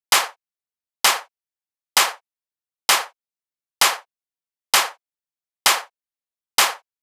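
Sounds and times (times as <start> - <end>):
techno clap loop at 130: 0.1 - 0.4, 1.0 - 1.3, 2.0 - 2.2, 2.9 - 3.1, 3.8 - 4.0, 4.8 - 5.0, 5.7 - 5.9, 6.6 - 6.8.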